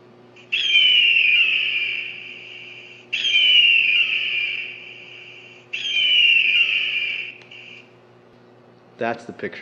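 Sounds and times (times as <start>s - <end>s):
bird of prey screaming: 0.4s - 7.9s
speech: 9.0s - 9.6s.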